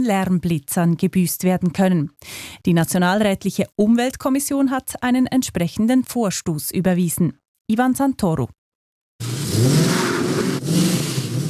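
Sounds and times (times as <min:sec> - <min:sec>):
speech: 0:00.0 - 0:08.6, 0:09.2 - 0:10.1
car engine revving loudly: 0:09.2 - 0:11.4.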